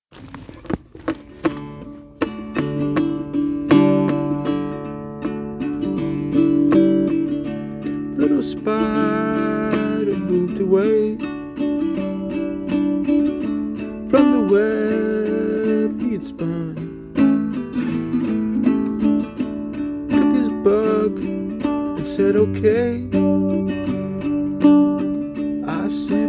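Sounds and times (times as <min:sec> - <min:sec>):
little classical guitar: 0:00.2 - 0:26.2.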